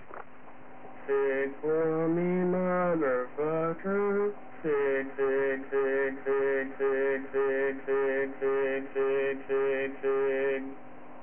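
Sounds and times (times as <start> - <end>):
person singing: 1.1 - 10.7.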